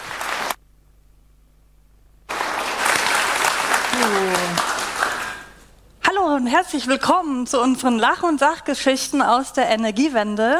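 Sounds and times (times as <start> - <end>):
audience applause: 0.0 - 0.6, 2.3 - 5.6
speech: 6.5 - 10.5.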